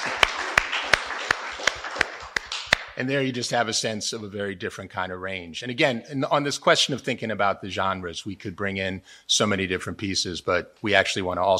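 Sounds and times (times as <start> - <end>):
hand claps: 0.0 - 3.0
speech: 3.0 - 11.5.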